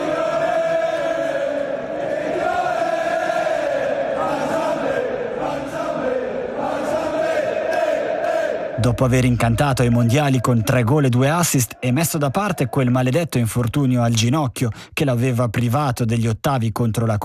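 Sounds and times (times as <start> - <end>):
large crowd of football fans singing a chant: 0.0 - 13.0
speech: 8.8 - 17.2.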